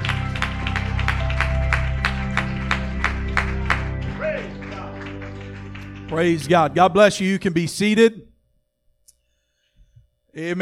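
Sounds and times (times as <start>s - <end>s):
audience clapping hands in praise: 0.0s - 7.3s
speech: 6.1s - 8.3s, 10.4s - 10.5s.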